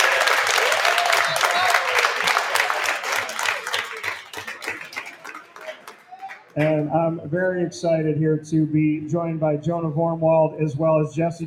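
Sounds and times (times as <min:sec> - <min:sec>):
crowd clapping loudly: 0:00.0 - 0:06.9
speech: 0:06.6 - 0:11.4.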